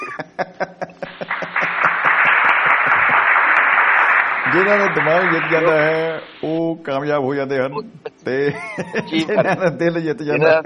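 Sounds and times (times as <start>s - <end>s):
laughter: 0.0s - 6.0s, 7.7s - 10.6s
audience applause: 1.0s - 6.4s
speech: 4.5s - 10.6s.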